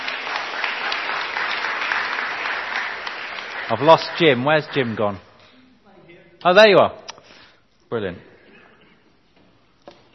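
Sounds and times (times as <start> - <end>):
crowd round of applause: 0.0 - 5.2
speech: 3.7 - 5.3, 6.4 - 7.0, 7.9 - 8.3.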